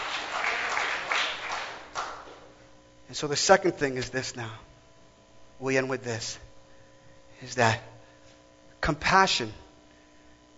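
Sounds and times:
audience clapping hands: 0:00.0 - 0:02.6
speech: 0:03.1 - 0:04.7, 0:05.6 - 0:06.5, 0:07.4 - 0:07.9, 0:08.8 - 0:09.6.

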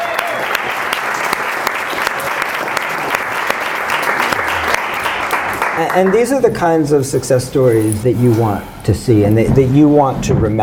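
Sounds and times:
audience applause: 0:00.0 - 0:06.4
speech: 0:05.8 - 0:10.6.

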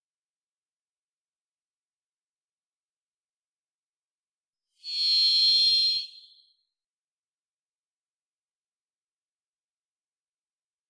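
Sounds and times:
varied thrush buzzy whistle song: 0:04.8 - 0:06.5.

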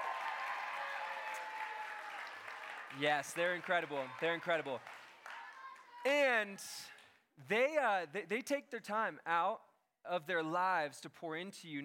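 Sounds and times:
audience applause: 0:00.0 - 0:06.0
speech: 0:02.9 - 0:05.0, 0:06.0 - 0:11.8.

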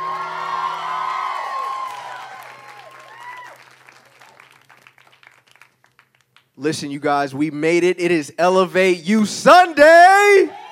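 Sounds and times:
scattered whoops: 0:00.0 - 0:03.6
audience at a youth Sunday church service clapping: 0:00.0 - 0:06.8
speech: 0:06.6 - 0:10.6.

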